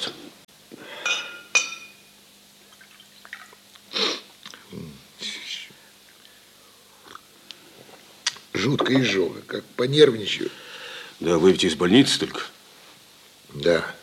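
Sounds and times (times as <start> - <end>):
glass clinking on glass: 1.0 - 2.1
water poured from carafe into glass: 2.7 - 3.6
speech: 8.6 - 10.6, 11.2 - 12.5, 13.7 - 14.0.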